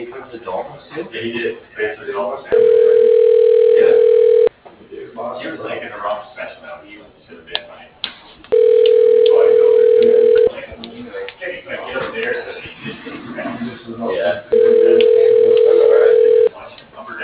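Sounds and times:
speech: 0.3s - 2.8s
telephone ringing: 2.5s - 4.5s, 8.5s - 10.5s, 14.5s - 16.5s.

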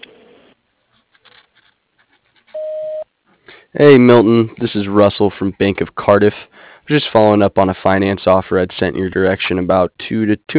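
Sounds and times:
voicemail beep: 2.6s - 3.1s
speech: 3.8s - 10.5s.

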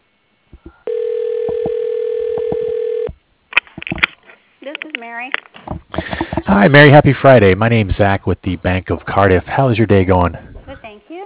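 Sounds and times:
steady telephone tone while a call is transferred: 0.7s - 3.1s
speech: 6.5s - 10.5s.

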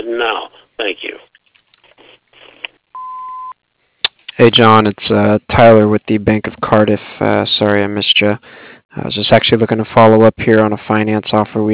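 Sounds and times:
speech: 0.1s - 1.1s, 4.4s - 11.7s
answering machine voicemail beep: 3.0s - 3.6s.

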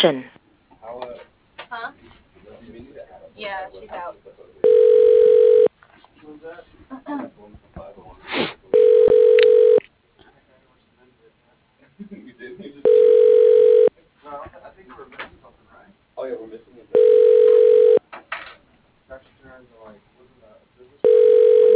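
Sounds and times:
speech: 0.0s - 1.0s, 6.2s - 8.5s
telephone ringback tone during call transfer: 4.6s - 5.7s, 8.8s - 9.8s, 12.9s - 13.9s, 17.0s - 18.0s, 21.0s - 21.7s.

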